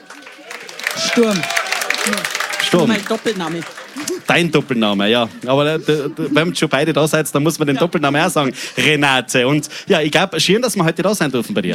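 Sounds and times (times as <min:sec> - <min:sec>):
audience applause at a live stage show: 0:00.0 - 0:07.2
laughter: 0:00.9 - 0:09.6
speech: 0:01.2 - 0:11.7.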